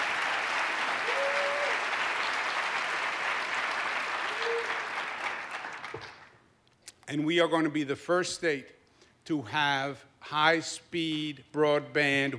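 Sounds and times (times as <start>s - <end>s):
audience applause: 0.0s - 6.4s
speech: 7.1s - 12.3s.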